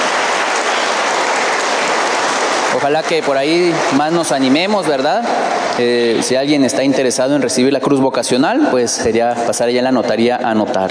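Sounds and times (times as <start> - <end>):
audience clapping: 0.0 - 5.9
speech: 2.8 - 10.8.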